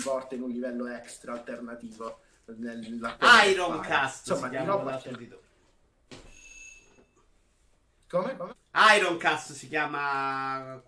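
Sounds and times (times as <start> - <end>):
speech: 0.0 - 5.5, 8.1 - 10.8
doorbell ringing: 6.2 - 7.2.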